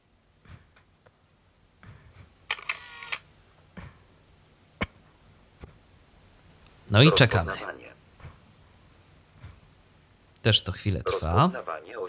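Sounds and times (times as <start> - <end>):
camera shutter taking a photo: 2.5 - 3.2
speech: 6.9 - 7.8, 10.4 - 12.0.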